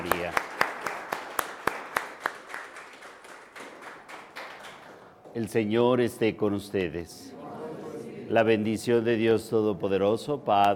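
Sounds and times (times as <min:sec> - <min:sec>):
audience applause: 0:00.0 - 0:05.2
speech: 0:05.4 - 0:07.4, 0:08.3 - 0:10.7.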